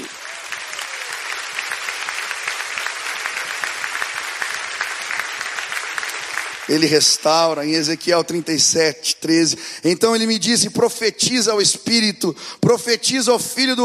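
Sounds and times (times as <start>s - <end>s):
audience applause: 0.0s - 8.0s
speech: 6.7s - 13.8s.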